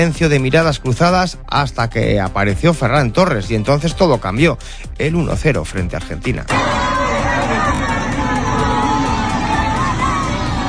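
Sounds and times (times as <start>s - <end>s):
speech: 0.0s - 7.0s
crowd celebrating a goal in the Palacio de los Deportes: 6.5s - 10.6s.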